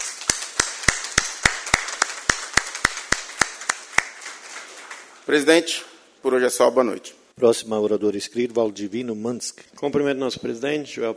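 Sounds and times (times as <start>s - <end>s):
hands clapping: 0.0s - 5.1s
speech: 5.3s - 11.1s.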